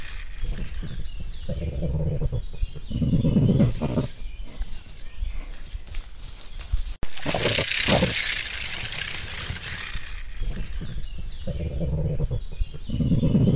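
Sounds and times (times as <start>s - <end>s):
crested porcupine grunting: 0.0s - 4.7s, 7.2s - 8.3s, 9.9s - 13.5s.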